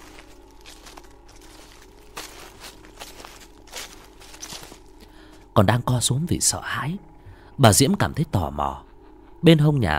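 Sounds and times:
footsteps on dry leaves: 0:00.0 - 0:05.6
steady low hum: 0:00.0 - 0:09.9
speech: 0:05.6 - 0:09.9.

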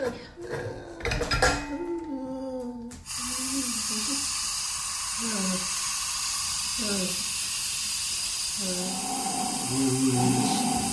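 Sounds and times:
people talking: 0:01.6 - 0:04.2, 0:05.2 - 0:05.6, 0:06.8 - 0:07.2, 0:08.6 - 0:10.9
oxygen supply hissing: 0:03.0 - 0:10.9.

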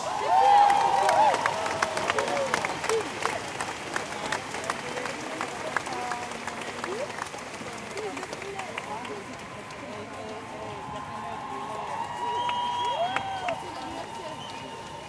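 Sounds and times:
crowd applause: 0:00.0 - 0:15.0.

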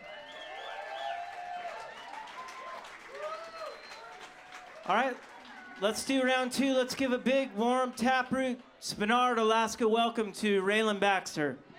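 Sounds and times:
audience applause: 0:00.0 - 0:08.4
speech: 0:04.9 - 0:11.7.

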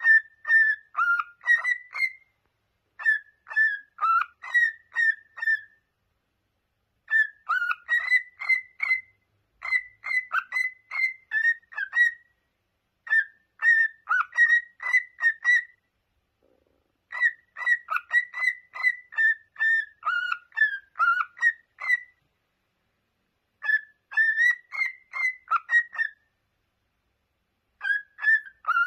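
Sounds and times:
cockatiel whistles: 0:00.0 - 0:02.3, 0:03.0 - 0:05.8, 0:07.1 - 0:12.3, 0:13.0 - 0:15.8, 0:17.1 - 0:22.2, 0:23.6 - 0:26.2, 0:27.8 - 0:28.8.

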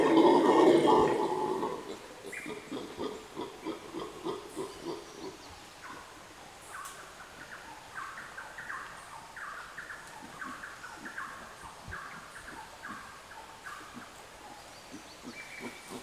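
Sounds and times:
howler monkeys roaring chorus in the Sierra Nevada: 0:00.0 - 0:05.4.

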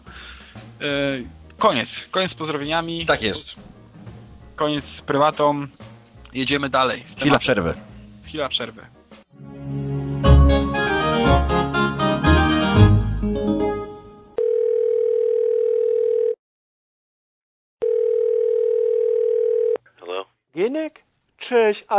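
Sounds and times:
lively music: 0:00.0 - 0:14.4
speech: 0:00.8 - 0:03.8, 0:04.6 - 0:09.0, 0:21.5 - 0:21.9
telephone dial tone: 0:14.4 - 0:16.4, 0:17.8 - 0:19.8.

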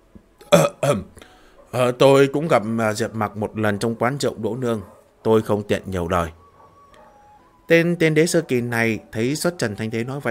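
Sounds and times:
dry coughs: 0:00.4 - 0:01.2
speech: 0:00.9 - 0:01.1, 0:01.7 - 0:06.4, 0:07.7 - 0:10.2.

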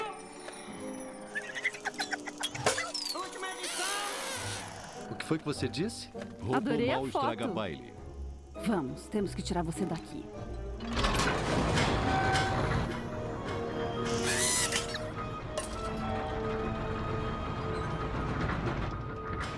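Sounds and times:
creaking door: 0:01.3 - 0:05.1, 0:10.8 - 0:19.5
speech: 0:05.3 - 0:08.0, 0:08.6 - 0:10.7.

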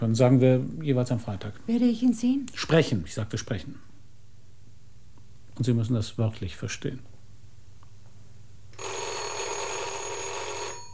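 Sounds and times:
speech: 0:00.0 - 0:03.9, 0:05.6 - 0:07.1
telephone bell ringing: 0:08.8 - 0:10.9.

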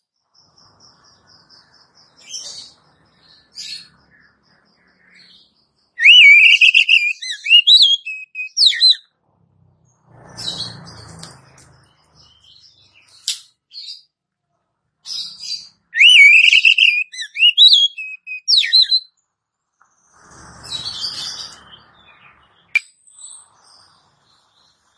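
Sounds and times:
Oriental magpie-robin whistled phrase: 0:06.0 - 0:09.0, 0:16.0 - 0:19.0.

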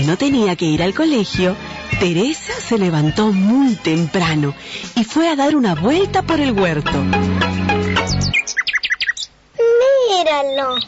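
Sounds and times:
speech: 0:00.0 - 0:08.5, 0:10.1 - 0:10.8
little bird chirping in a vegetable garden: 0:07.8 - 0:09.4, 0:10.2 - 0:10.8.

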